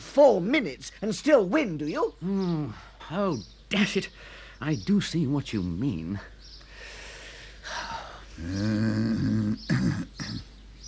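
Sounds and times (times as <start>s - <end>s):
speech: 0.2s - 6.3s, 8.4s - 10.5s
soft low gentle cough: 9.4s - 10.6s.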